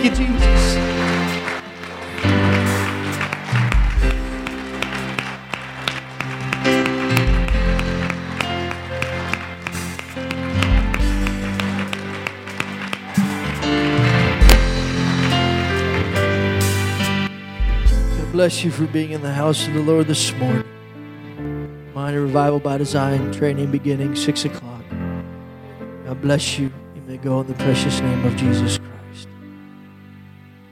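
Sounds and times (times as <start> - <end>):
speech: 0.0 - 1.0, 18.4 - 20.7, 22.1 - 24.9, 26.2 - 29.3
audience applauding: 0.0 - 17.3.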